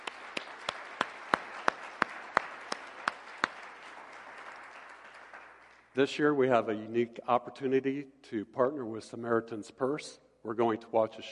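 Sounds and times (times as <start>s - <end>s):
audience applause: 0.0s - 5.9s
speech: 6.0s - 11.2s.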